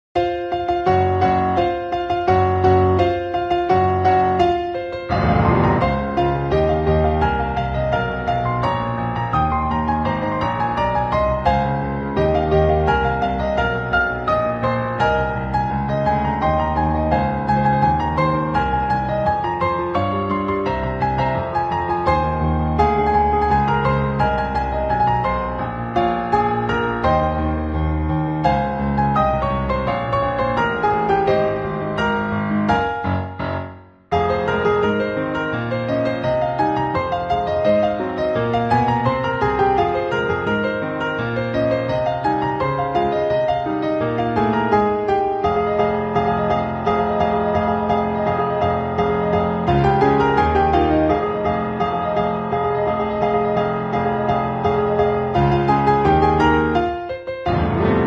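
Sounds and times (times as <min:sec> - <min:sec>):
piano: 0:00.0 - 0:58.0.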